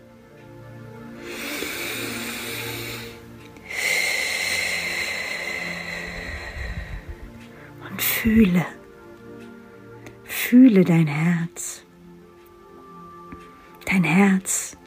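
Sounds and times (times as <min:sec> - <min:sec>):
faint steady tones: 0:00.0 - 0:14.8
deep breath in and out: 0:01.2 - 0:08.2
speech: 0:08.2 - 0:08.8, 0:10.5 - 0:11.6.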